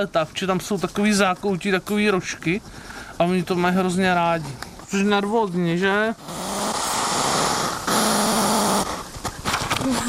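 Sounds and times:
speech: 0:00.0 - 0:06.4
hedgehog huffing loudly: 0:00.9 - 0:05.1, 0:06.1 - 0:09.1.

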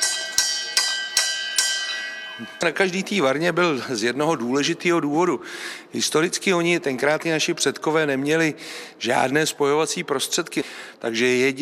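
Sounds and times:
brewery bell ringing: 0:00.0 - 0:03.2
speech: 0:02.4 - 0:11.6.

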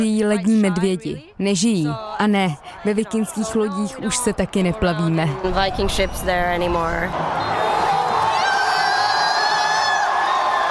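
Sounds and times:
speech: 0:00.0 - 0:07.6
fans cheering after a win: 0:02.2 - 0:10.6.

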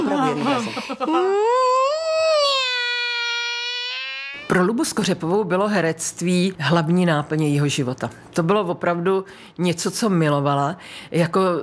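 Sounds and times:
laughter: 0:00.0 - 0:01.8
speech: 0:00.0 - 0:02.0, 0:04.5 - 0:11.6
person imitating a cat meowing: 0:01.4 - 0:04.6.

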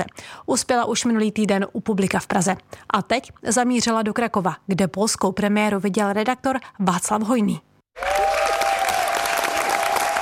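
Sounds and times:
speech: 0:00.0 - 0:08.1
theatre audience applause at the end of a play in Kraków: 0:08.0 - 0:10.2.

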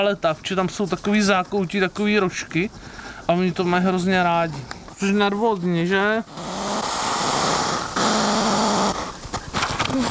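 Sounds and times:
speech: 0:00.0 - 0:06.5
hedgehog huffing loudly: 0:06.3 - 0:09.2.

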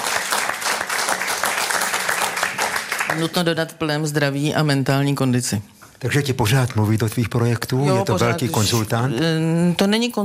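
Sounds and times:
applause: 0:00.0 - 0:03.6
speech: 0:03.1 - 0:10.2.

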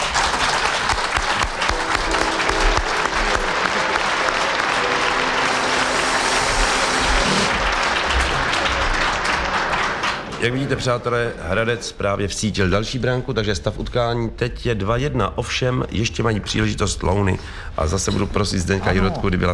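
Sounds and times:
audience applause: 0:00.0 - 0:11.3
speech: 0:10.4 - 0:19.5.

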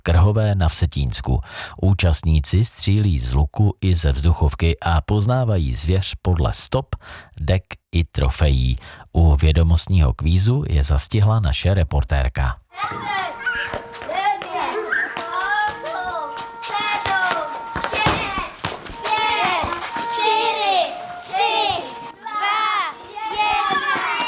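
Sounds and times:
speech: 0:00.0 - 0:13.9
crowd of children chattering and calling out: 0:12.7 - 0:24.2.

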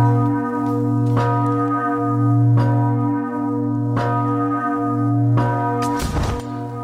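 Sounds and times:
large church bell ringing: 0:00.0 - 0:06.8
heavy metallic crash of falling bell clapper: 0:05.8 - 0:06.6.

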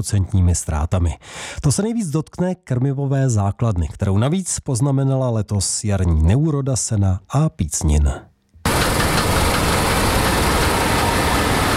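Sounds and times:
speech: 0:00.0 - 0:08.3
corn harvester engine roaring while driving past: 0:08.7 - 0:11.7.

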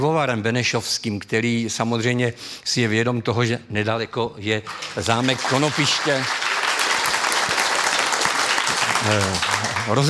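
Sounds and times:
speech: 0:00.0 - 0:06.5, 0:09.0 - 0:10.0
audience applause: 0:04.7 - 0:10.0.

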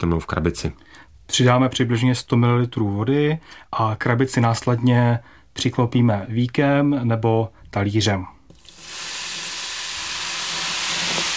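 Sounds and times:
speech: 0:00.0 - 0:09.0
fizzing chemical reaction releasing gas: 0:08.5 - 0:11.3.

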